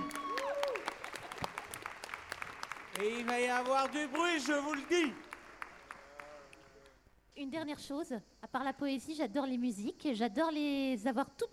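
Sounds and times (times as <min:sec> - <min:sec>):
audience applause: 0:00.0 - 0:06.9
speech: 0:03.0 - 0:05.3, 0:07.4 - 0:11.5.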